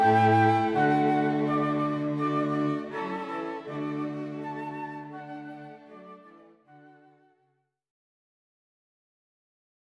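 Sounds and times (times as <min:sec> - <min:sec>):
flute quartet playing: 0:00.0 - 0:07.3.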